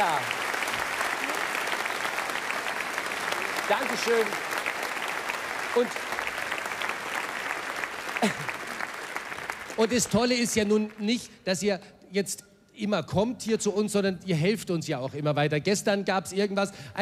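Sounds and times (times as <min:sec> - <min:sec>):
audience applause: 0:00.0 - 0:11.1
speech: 0:03.7 - 0:04.5, 0:05.8 - 0:06.1, 0:08.2 - 0:08.5, 0:09.8 - 0:16.9.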